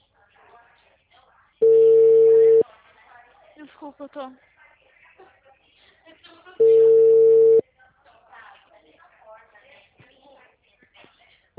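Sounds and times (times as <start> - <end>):
telephone ringback tone of an unanswered call to a clinic: 1.6 - 2.6, 6.6 - 7.6
speech: 3.8 - 4.5.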